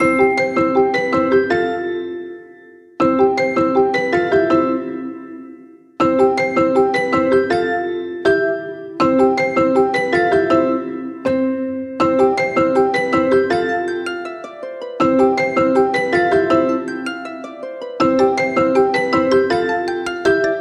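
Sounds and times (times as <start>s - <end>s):
inspiring ringtone: 0.0s - 20.5s.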